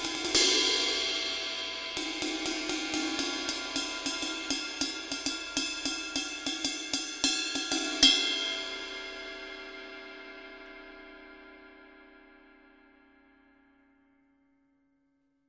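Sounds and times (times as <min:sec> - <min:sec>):
21-inch medium traditional ride cymbal: 0:00.0 - 0:09.8.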